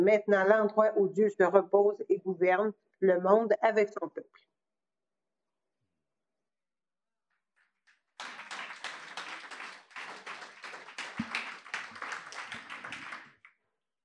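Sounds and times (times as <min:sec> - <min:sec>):
speech: 0:00.0 - 0:04.5
audience applause: 0:08.2 - 0:13.5.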